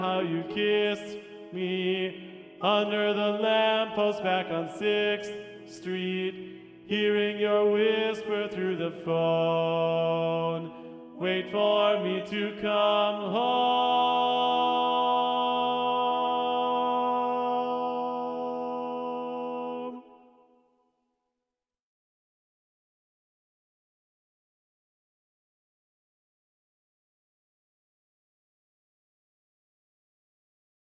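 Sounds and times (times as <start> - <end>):
tenor singing: 0.0 - 20.4.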